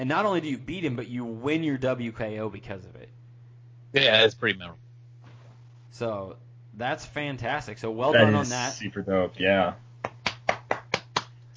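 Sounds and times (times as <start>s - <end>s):
speech: 0.0s - 3.2s, 3.9s - 4.8s, 5.9s - 9.8s
hand clapping: 10.0s - 11.5s.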